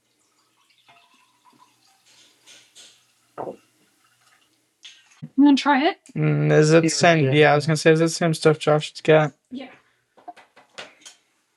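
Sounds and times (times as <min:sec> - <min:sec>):
wine pouring into a glass: 0:00.0 - 0:04.5
speech: 0:03.4 - 0:03.6, 0:05.4 - 0:09.8.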